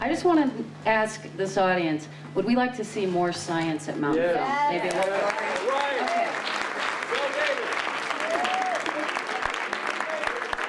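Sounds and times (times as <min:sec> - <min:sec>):
speech: 0:00.0 - 0:05.9
audience applause after film screening: 0:04.8 - 0:10.6.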